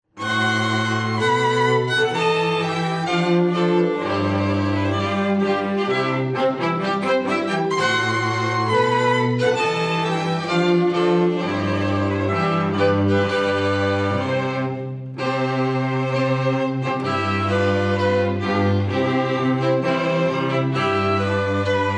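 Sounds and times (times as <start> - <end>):
wedding march music: 0.1 - 21.9.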